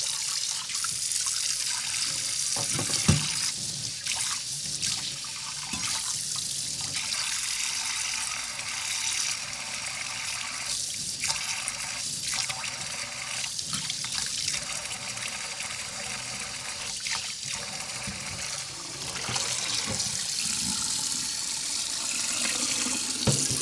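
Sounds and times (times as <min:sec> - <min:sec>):
washing dishes: 0:00.0 - 0:23.6.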